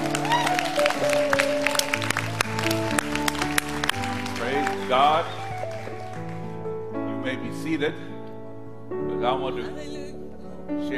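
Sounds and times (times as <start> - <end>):
audience clapping: 0.0 - 6.7
crowd noise humming: 0.0 - 6.7
sustained musical tones: 0.0 - 7.2
speech: 7.7 - 8.1, 9.2 - 10.0, 10.8 - 10.9.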